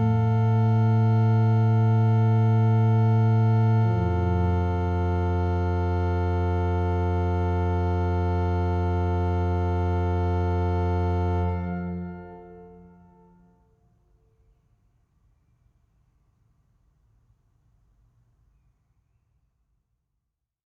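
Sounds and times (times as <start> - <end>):
organist playing a small pastorale: 0.0 - 13.4.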